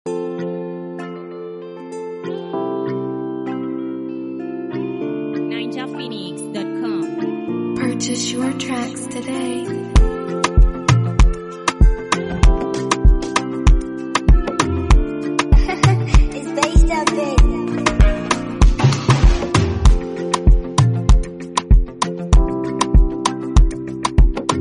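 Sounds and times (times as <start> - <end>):
type beat instrumental: 10.0 - 24.5.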